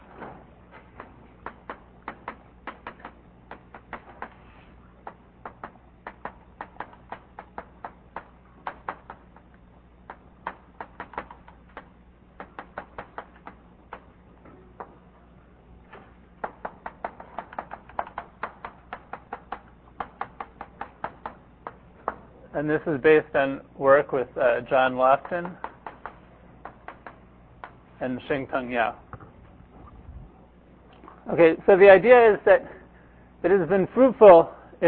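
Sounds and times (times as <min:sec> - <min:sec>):
writing tool tapping as a lecturer writes a talk title: 0:01.0 - 0:04.4, 0:05.0 - 0:14.1, 0:16.4 - 0:22.2
speech: 0:22.6 - 0:25.6, 0:28.0 - 0:29.0, 0:31.3 - 0:32.8, 0:33.4 - 0:34.8.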